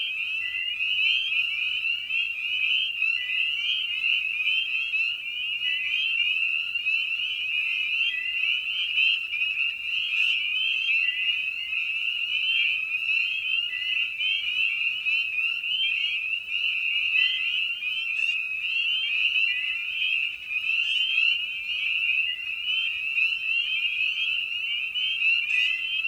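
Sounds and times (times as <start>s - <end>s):
spring peepers chorus: 0.0s - 26.0s.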